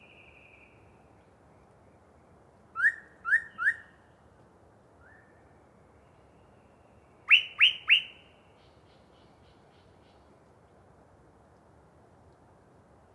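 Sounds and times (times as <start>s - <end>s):
yellow-breasted chat whistling song: 7.3s - 8.1s.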